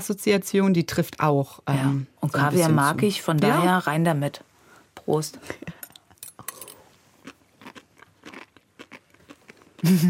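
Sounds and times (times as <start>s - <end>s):
speech: 0.0s - 5.8s, 9.8s - 10.0s
person chewing sea grape seaweed: 6.0s - 10.0s
laughter: 9.8s - 10.0s.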